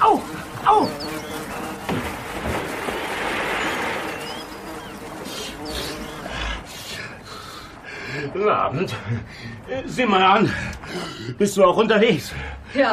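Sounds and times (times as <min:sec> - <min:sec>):
wasp swarm buzzing: 0:00.0 - 0:06.9
speech: 0:08.7 - 0:12.9.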